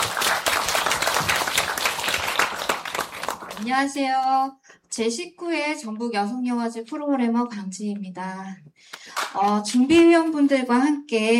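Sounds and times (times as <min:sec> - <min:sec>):
crowd applauding: 0:00.0 - 0:03.7
speech: 0:03.6 - 0:11.3.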